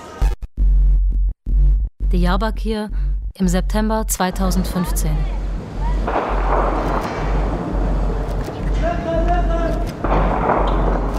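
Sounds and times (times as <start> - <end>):
steady rumbling noise: 0.6 - 11.1
speech: 2.1 - 5.4, 6.0 - 6.3
gunshots echoing over a city wall: 6.0 - 9.2, 9.8 - 11.1.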